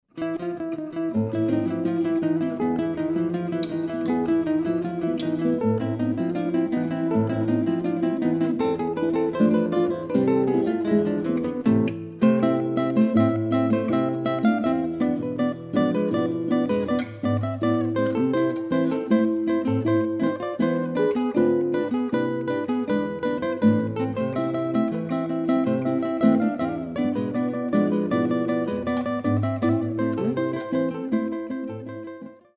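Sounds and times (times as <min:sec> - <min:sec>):
three guitars playing milonga: 0:00.2 - 0:32.4.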